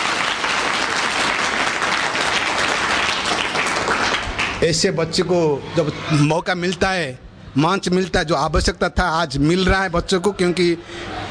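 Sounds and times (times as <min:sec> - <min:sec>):
audience clapping loudly: 0:00.0 - 0:04.9
speech: 0:04.6 - 0:11.2.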